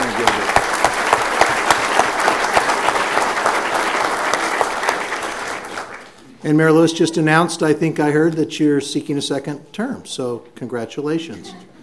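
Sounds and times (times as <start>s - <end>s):
round of applause: 0.0s - 6.3s
speech: 6.4s - 11.7s.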